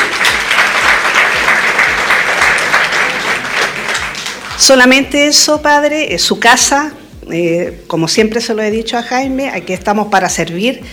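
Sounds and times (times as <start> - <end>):
audience applause: 0.0 - 4.6
speech: 4.6 - 10.9.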